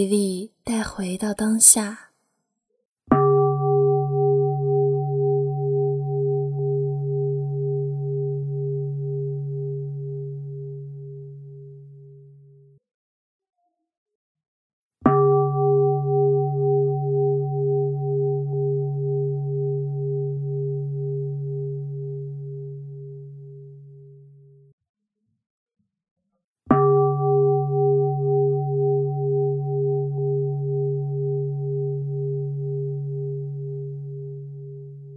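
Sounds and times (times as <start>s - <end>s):
speech: 0.0s - 2.1s
meditation bell chimes: 3.2s - 12.5s, 15.1s - 24.6s, 26.7s - 35.1s.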